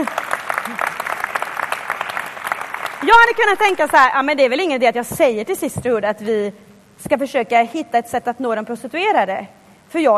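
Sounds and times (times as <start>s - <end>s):
church congregation clapping: 0.0s - 3.7s
speech: 3.1s - 10.1s.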